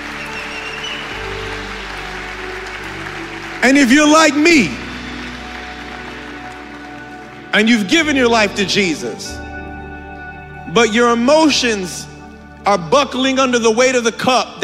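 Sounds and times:
audience clapping and cheering: 0.0s - 9.5s
speech: 3.6s - 4.8s, 7.6s - 9.5s, 10.7s - 14.6s.

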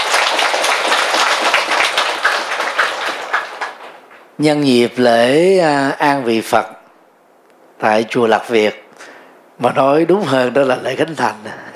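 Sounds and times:
loud applause from audience: 0.0s - 4.2s
speech: 4.4s - 6.8s, 7.8s - 8.8s, 9.6s - 11.7s.

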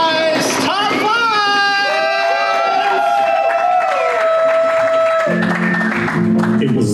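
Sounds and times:
live crowd cheering and clapping: 0.0s - 6.8s
sliding whoops: 1.7s - 6.0s.

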